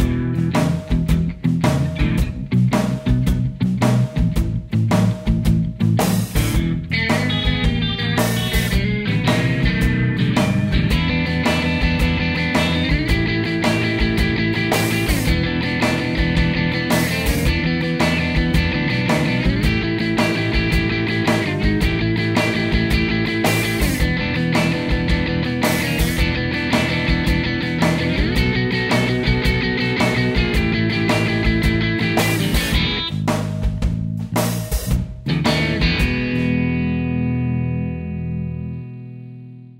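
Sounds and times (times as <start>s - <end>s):
blues backing track: 0.0s - 39.7s.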